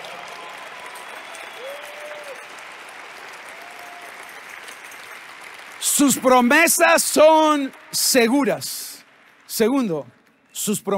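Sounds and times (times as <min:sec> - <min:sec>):
audience applause: 0:00.0 - 0:10.9
tonal whistles: 0:01.0 - 0:02.4
speech: 0:05.9 - 0:08.9, 0:09.6 - 0:10.9.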